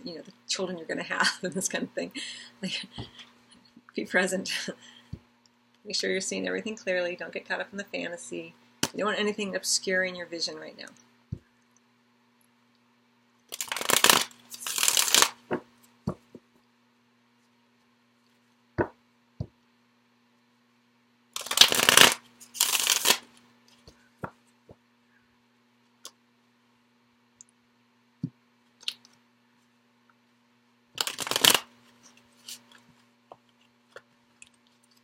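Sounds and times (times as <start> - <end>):
speech: 0.0 - 3.3, 4.0 - 5.0, 5.8 - 11.1
tarot cards being shuffled: 13.5 - 16.2, 21.4 - 23.9, 31.0 - 32.9.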